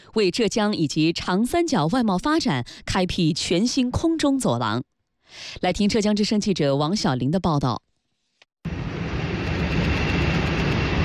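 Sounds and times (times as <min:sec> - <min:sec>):
speech: 0:00.2 - 0:07.9
YTO Airlines Jiaxing cargo plane engines roaring at takeoff: 0:08.7 - 0:11.0.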